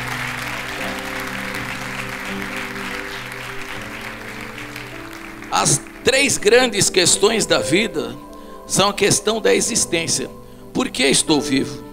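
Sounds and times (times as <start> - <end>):
audience applauding: 0.0 - 7.6
speech: 5.6 - 11.8.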